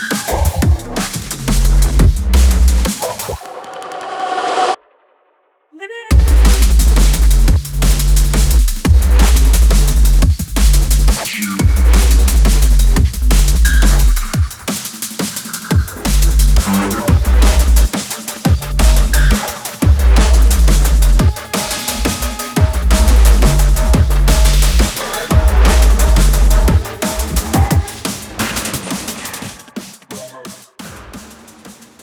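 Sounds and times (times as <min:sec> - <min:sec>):
wub bass: 0:00.3 - 0:03.4, 0:06.1 - 0:14.6, 0:15.8 - 0:28.6.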